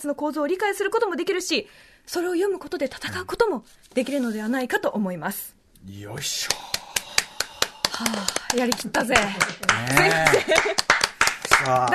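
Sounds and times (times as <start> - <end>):
speech: 0.0 - 6.8, 8.0 - 10.9, 11.6 - 11.9
hand claps: 6.4 - 11.9
laughter: 9.9 - 10.9.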